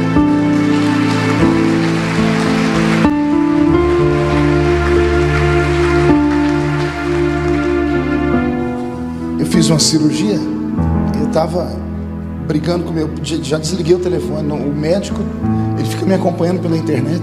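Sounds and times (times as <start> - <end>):
audience applause: 0.0 - 8.5
sustained keyboard chords: 0.0 - 17.2
speech: 9.7 - 10.6, 11.3 - 11.9, 12.5 - 17.2.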